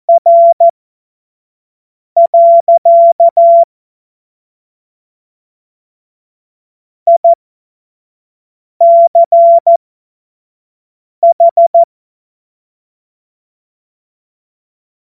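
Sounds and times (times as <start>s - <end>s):
CW Morse code beeps: 0.1s - 0.7s, 2.2s - 3.7s, 7.1s - 7.4s, 8.8s - 9.8s, 11.2s - 11.9s.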